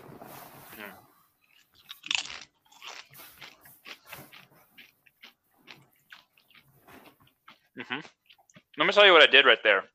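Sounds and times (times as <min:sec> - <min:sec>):
crackly chewing of tortilla chip: 0:01.4 - 0:09.1
tortilla chip with salsa crunching: 0:01.5 - 0:08.7
speech: 0:07.8 - 0:08.2, 0:08.8 - 0:09.9.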